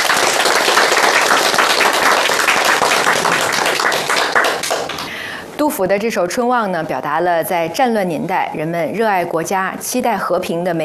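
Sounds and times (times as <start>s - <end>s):
group applauding: 0.0s - 5.3s
speech: 5.7s - 10.8s.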